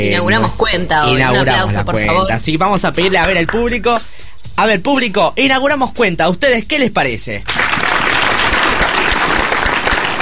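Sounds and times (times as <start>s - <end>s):
speech: 0.0s - 7.8s
studio audience applauding: 7.5s - 10.2s.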